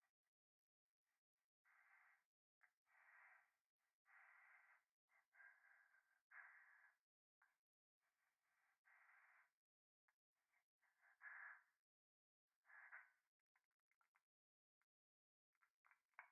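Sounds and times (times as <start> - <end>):
breathing pressed against the right ear in a bath: 1.6 - 2.3, 2.9 - 7.0, 8.4 - 9.6, 10.8 - 11.8, 12.6 - 13.2.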